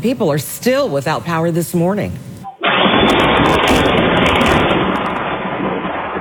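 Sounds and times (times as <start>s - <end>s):
speech: 0.0s - 2.3s
lightning strike thunder crack: 2.7s - 6.1s.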